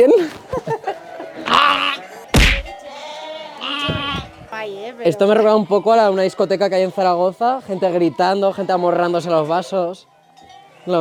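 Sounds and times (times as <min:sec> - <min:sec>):
laughter: 0:00.0 - 0:02.8
bottle-fed young lamb or kid bleating: 0:01.4 - 0:04.6
sharp thump: 0:02.3 - 0:02.8
speech: 0:05.0 - 0:10.1.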